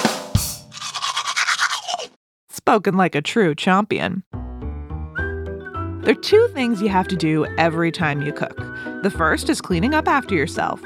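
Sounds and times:
teeth being brushed with toothbrush: 0.7 - 2.2
speech: 2.6 - 4.4, 6.1 - 10.8.

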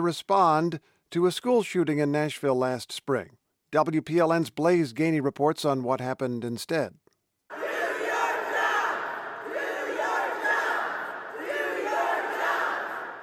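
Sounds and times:
speech: 0.0 - 7.0
crowd of activists yelling and shouting at lawmakers: 7.5 - 13.2.

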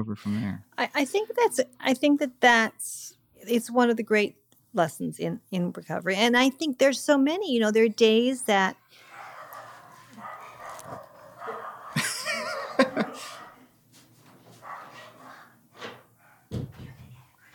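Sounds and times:
speech: 0.0 - 9.0
dogs barking: 9.0 - 13.8, 14.5 - 16.6
people laughing: 12.0 - 13.4.

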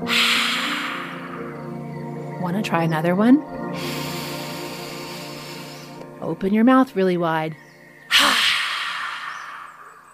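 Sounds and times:
lion's breath exhale imitating roar: 0.0 - 1.6, 3.8 - 6.0, 8.1 - 10.1
speech: 2.4 - 4.0, 6.2 - 7.6.

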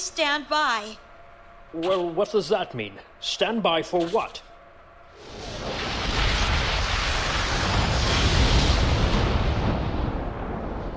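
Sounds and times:
speech: 0.0 - 1.1, 1.7 - 4.5
power node exploding: 5.2 - 10.9.

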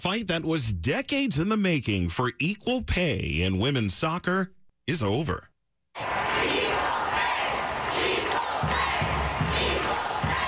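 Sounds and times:
speech: 0.0 - 6.2
packed crowd chanting at Audi Field in Washington: 6.0 - 10.4.

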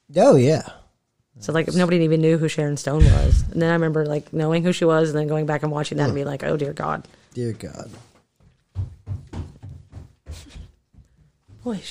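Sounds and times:
speech: 0.1 - 0.8, 1.4 - 8.1, 11.6 - 11.9
stomping footsteps: 7.9 - 11.9.

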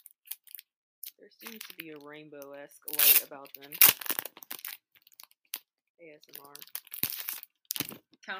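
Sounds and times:
speech: 1.2 - 4.2, 6.0 - 7.0, 7.9 - 8.3
plastic packaging crinkling as it is opened: 1.4 - 5.6, 6.2 - 8.2.

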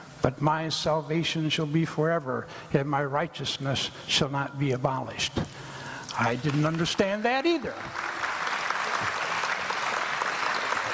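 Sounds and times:
speech: 0.2 - 8.1
audience applause: 7.5 - 10.9.

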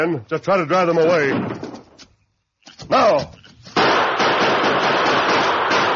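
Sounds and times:
speech: 0.0 - 1.7, 2.9 - 3.4
gunfire from repeating rifles: 3.8 - 5.9.

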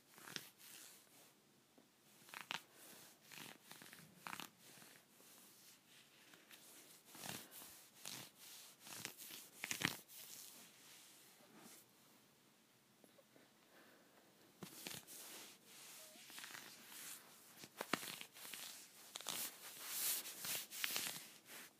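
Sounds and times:
scratchy leggings rubbing: 3.2 - 5.7, 6.3 - 11.8, 14.6 - 21.7.

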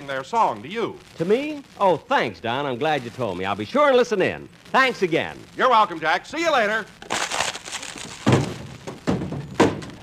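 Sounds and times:
speech: 0.1 - 7.2
girdle breaking with a thud: 7.0 - 10.0.

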